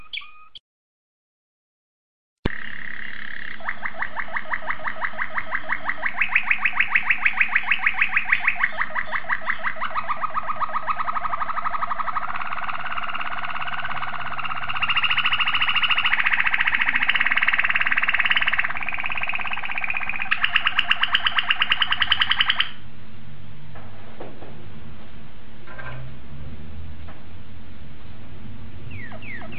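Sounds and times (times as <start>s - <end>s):
domestic canary song with rolling trills: 2.5s - 22.8s, 28.9s - 29.5s.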